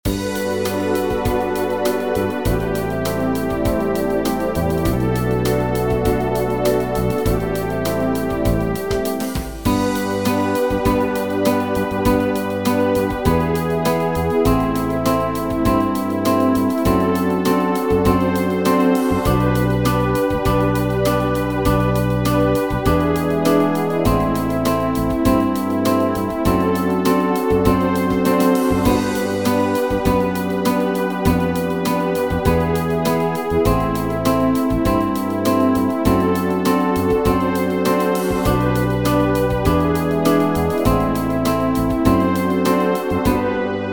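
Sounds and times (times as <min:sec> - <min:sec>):
100 bpm backing track: 0:00.0 - 0:43.9.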